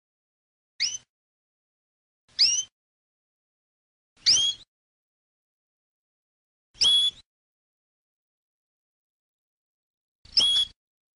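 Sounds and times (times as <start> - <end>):
canary singing trills and whistled notes: 0.8 - 1.1, 2.3 - 2.8, 4.2 - 4.7, 6.8 - 7.2, 10.3 - 10.8.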